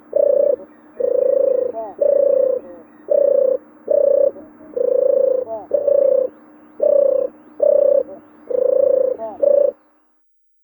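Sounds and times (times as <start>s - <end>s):
European turtle dove purring song in May: 0.0s - 10.2s.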